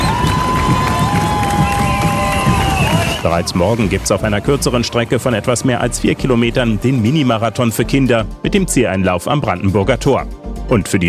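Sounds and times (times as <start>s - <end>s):
crowd cheering on marathon runners: 0.0s - 7.5s
speech: 3.2s - 11.0s.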